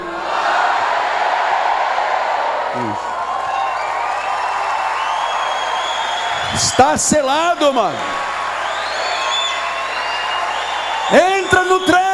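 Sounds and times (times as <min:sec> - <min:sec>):
church audience shouting praise: 0:00.0 - 0:12.1
church audience applauding: 0:01.1 - 0:12.1
speech: 0:06.8 - 0:08.2.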